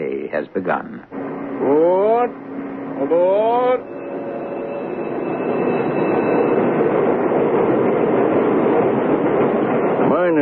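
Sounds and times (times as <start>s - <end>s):
speech: 0.3s - 1.0s, 1.6s - 4.0s, 10.2s - 10.3s
big shiny electric commuter train stopping at platform: 1.1s - 10.3s.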